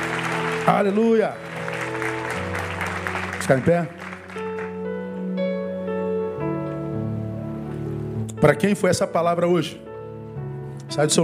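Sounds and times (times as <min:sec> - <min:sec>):
audience applauding: 0:00.0 - 0:04.9
low keyboard chords: 0:00.0 - 0:11.2
speech: 0:00.7 - 0:01.5, 0:03.5 - 0:04.0, 0:08.4 - 0:09.8, 0:11.0 - 0:11.2.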